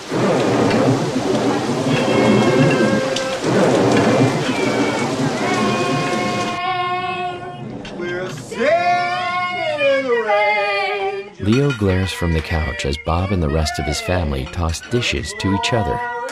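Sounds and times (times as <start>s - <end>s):
tonal sounds: 0.0s - 6.6s, 11.4s - 16.0s
heavy rain pouring outside a house: 0.0s - 10.3s, 11.4s - 16.0s
speech: 12.1s - 16.2s.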